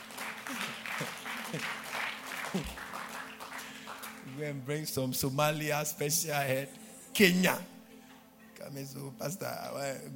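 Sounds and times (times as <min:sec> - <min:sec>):
audience clapping: 0:00.0 - 0:04.6
speech: 0:01.0 - 0:01.8, 0:02.5 - 0:02.8, 0:04.4 - 0:07.7, 0:08.7 - 0:10.1.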